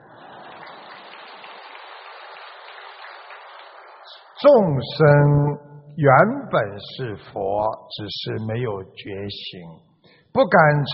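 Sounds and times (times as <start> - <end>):
audience clapping: 0.0 - 4.8
speech: 4.4 - 10.9.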